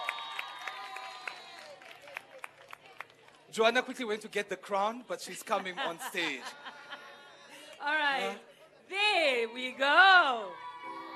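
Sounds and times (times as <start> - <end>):
audience applause: 0.0 - 3.5
speech: 3.6 - 6.7, 7.8 - 10.6
laughter: 5.3 - 8.9.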